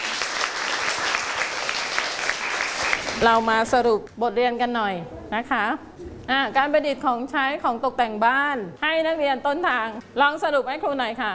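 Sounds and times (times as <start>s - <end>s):
students clapping loudly: 0.0s - 3.3s
speech: 3.2s - 11.3s.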